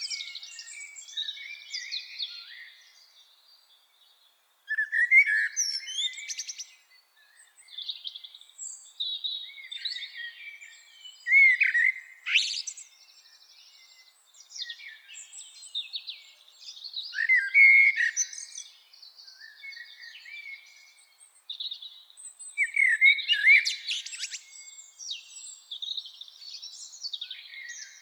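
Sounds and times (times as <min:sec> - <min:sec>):
common blackbird singing: 0:00.0 - 0:03.1, 0:04.7 - 0:28.0.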